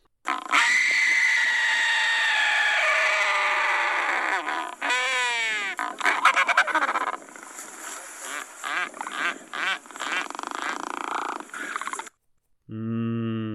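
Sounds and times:
albatross courtship scream: 0:00.3 - 0:07.2, 0:08.2 - 0:12.1.

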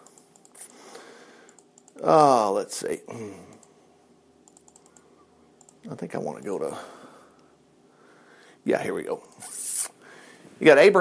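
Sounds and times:
computer mouse clicking: 0:00.0 - 0:00.8, 0:01.4 - 0:02.0, 0:04.5 - 0:05.8
hiss: 0:00.0 - 0:11.0
speech: 0:02.0 - 0:03.6, 0:05.9 - 0:07.0, 0:08.6 - 0:09.6, 0:10.6 - 0:11.0.

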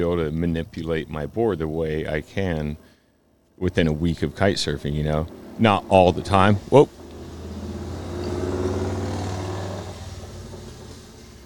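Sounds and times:
speech: 0:00.0 - 0:03.0, 0:03.6 - 0:07.0
loud motorcycle passing by: 0:04.2 - 0:11.4.

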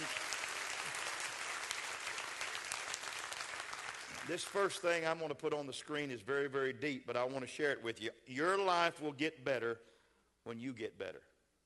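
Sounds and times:
audience clapping: 0:00.0 - 0:05.0
speech: 0:04.3 - 0:11.3.

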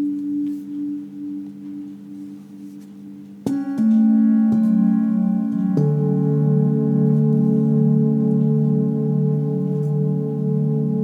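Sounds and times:
ancient singing bowls ringing: 0:00.0 - 0:11.0.

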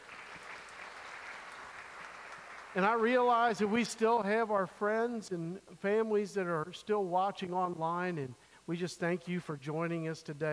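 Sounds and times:
audience applause: 0:00.0 - 0:04.0
speech: 0:02.8 - 0:10.5.

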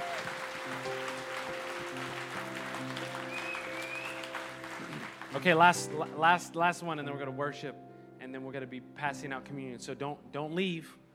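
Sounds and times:
audience applause: 0:00.0 - 0:05.9
whistle: 0:03.3 - 0:04.3
speech: 0:05.4 - 0:11.0.

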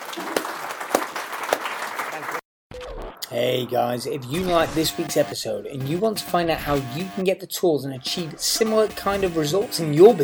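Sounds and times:
crowd applauding: 0:00.0 - 0:02.4
speech: 0:03.3 - 0:10.2.

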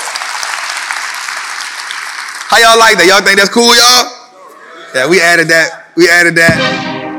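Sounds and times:
applause sound effect: 0:00.0 - 0:02.7
speech: 0:02.5 - 0:04.2, 0:04.9 - 0:06.9.

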